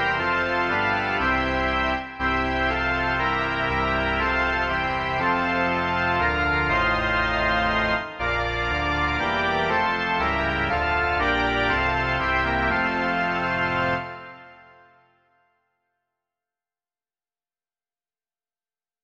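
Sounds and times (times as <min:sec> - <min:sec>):
organ: 0:00.0 - 0:15.1.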